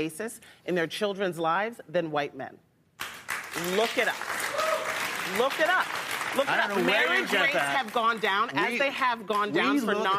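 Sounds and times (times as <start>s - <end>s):
speech: 0.0s - 2.7s, 3.6s - 4.4s, 5.2s - 10.1s
audience applause: 3.0s - 8.4s.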